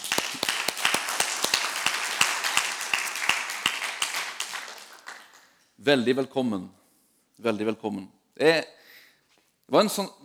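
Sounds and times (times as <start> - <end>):
audience applause: 0.0 - 5.6
speech: 5.8 - 6.8, 7.4 - 8.8, 9.7 - 10.2.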